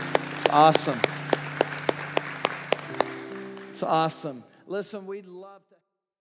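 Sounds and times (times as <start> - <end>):
church audience clapping in unison: 0.0 - 4.4
speech: 0.5 - 1.1, 3.8 - 5.9.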